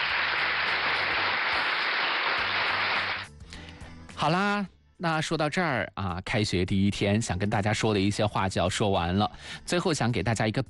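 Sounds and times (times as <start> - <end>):
crowd applause: 0.0 - 3.3
speech: 4.2 - 10.6.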